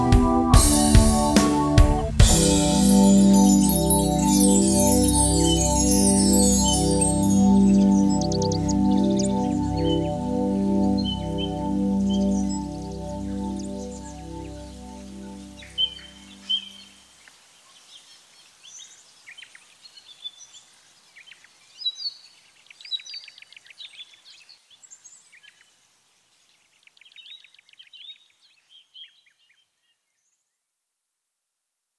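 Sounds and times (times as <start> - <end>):
organ: 0.0 - 16.6.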